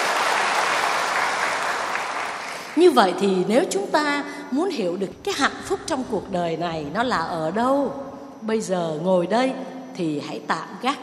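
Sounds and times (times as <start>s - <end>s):
audience at a monk's talk clapping: 0.0s - 2.8s
speech: 2.8s - 11.0s.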